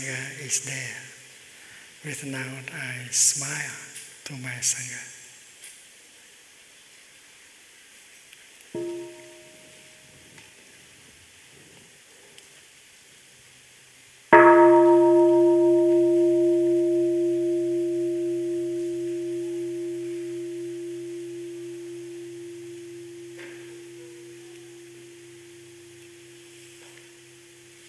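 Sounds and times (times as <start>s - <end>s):
speech: 0.0s - 1.1s, 2.0s - 5.2s
mindfulness bell ringing: 8.8s - 9.9s, 14.4s - 27.8s.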